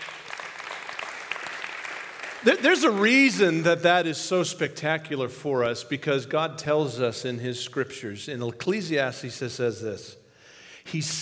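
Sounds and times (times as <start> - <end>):
crowd applauding: 0.0 - 4.1
speech: 2.4 - 10.2, 10.9 - 11.2.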